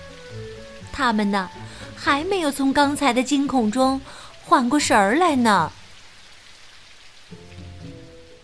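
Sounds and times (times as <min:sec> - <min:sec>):
steady rain falling: 0:00.0 - 0:08.4
speech: 0:01.0 - 0:05.8.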